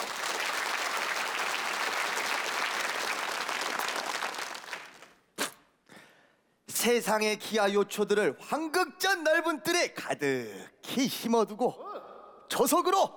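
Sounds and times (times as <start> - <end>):
audience applause: 0.0 - 5.2
speech: 6.8 - 11.9, 12.6 - 13.1.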